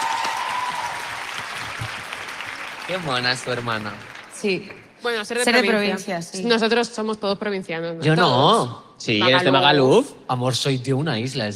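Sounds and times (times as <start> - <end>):
studio audience applauding: 0.0 - 5.0
speech: 2.9 - 11.5.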